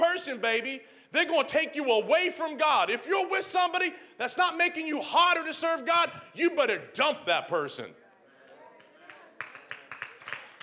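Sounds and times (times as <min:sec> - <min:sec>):
speech: 0:00.3 - 0:08.0
hand claps: 0:08.8 - 0:10.6.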